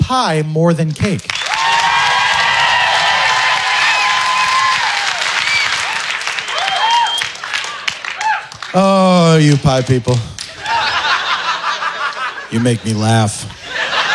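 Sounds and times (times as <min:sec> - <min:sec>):
speech: 0:00.1 - 0:01.4, 0:08.7 - 0:10.4, 0:12.5 - 0:13.6
audience applause: 0:01.3 - 0:12.4
laughter: 0:10.4 - 0:14.1.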